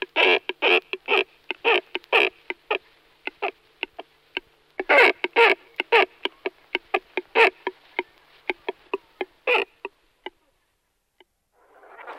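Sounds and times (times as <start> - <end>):
cormorant rasping grunts: 0.0 - 4.1, 4.8 - 9.9.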